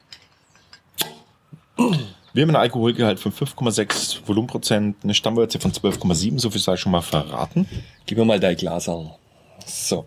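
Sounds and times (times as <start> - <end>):
beer bottle cap popping: 0.9 - 1.3
speech: 2.4 - 10.0.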